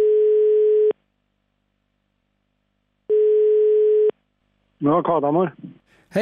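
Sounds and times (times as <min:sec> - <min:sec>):
mobile phone ringing tone beeps while calling someone: 0:00.0 - 0:00.9, 0:03.1 - 0:04.1
speech: 0:04.8 - 0:06.1.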